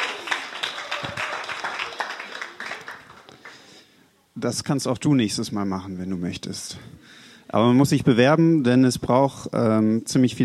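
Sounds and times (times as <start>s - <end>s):
audience applause: 0.0s - 3.7s
speech: 4.4s - 10.4s.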